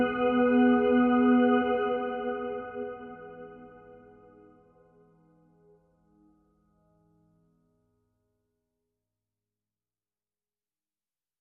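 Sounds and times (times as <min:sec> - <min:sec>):
ambient music: 0:00.0 - 0:06.5.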